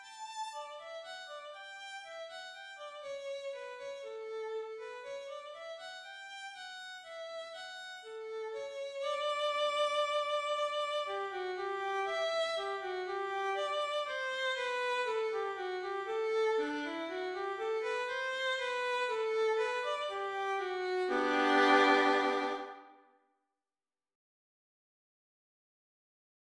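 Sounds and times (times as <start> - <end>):
violin playing a minuet: 0.0 - 22.9.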